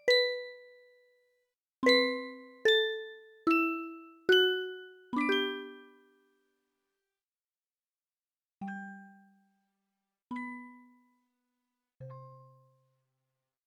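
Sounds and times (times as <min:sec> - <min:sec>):
lullaby radio aircheck: 0:00.0 - 0:00.9, 0:01.8 - 0:06.3.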